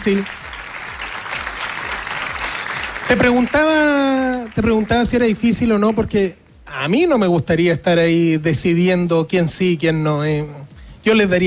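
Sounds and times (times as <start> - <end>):
speech: 0.0 - 0.4, 3.1 - 11.4
applause for the jury: 0.0 - 5.6.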